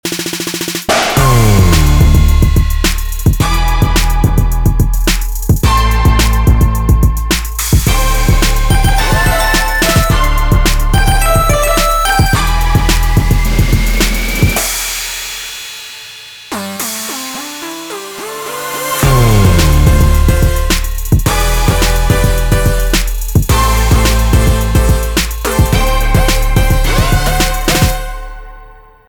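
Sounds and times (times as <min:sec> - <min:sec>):
modern instrumental music: 0:00.1 - 0:29.0.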